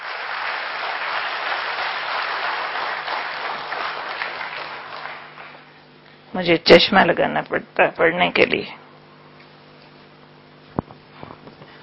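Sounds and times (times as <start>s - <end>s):
audience applause: 0.0s - 5.7s
speech: 6.4s - 8.8s.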